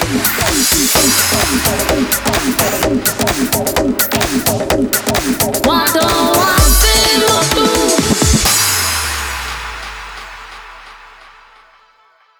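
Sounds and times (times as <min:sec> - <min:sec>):
saxophone remix: 0:00.0 - 0:08.6.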